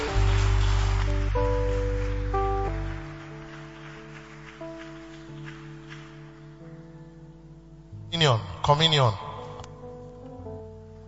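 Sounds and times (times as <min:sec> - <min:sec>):
audience clapping: 0:00.0 - 0:06.7
speech: 0:08.3 - 0:09.2.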